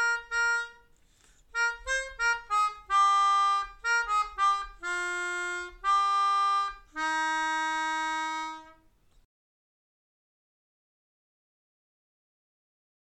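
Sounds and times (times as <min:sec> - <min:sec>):
melodica: 0:00.0 - 0:08.9.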